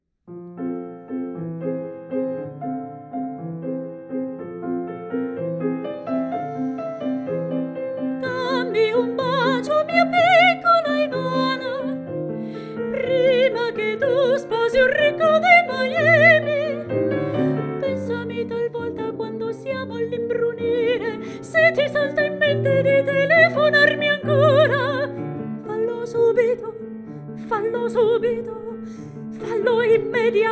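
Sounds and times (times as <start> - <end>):
piano: 0.2 - 30.4
singing voice: 8.2 - 12.0, 12.8 - 26.8, 27.4 - 30.4.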